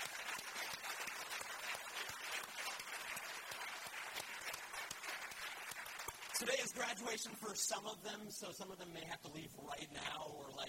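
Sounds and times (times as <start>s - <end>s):
audience applause: 0.0s - 7.1s
speech: 6.4s - 10.6s.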